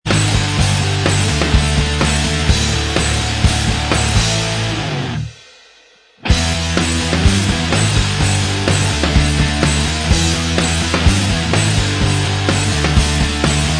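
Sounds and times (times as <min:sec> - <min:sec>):
instrumental music: 0:00.1 - 0:13.7.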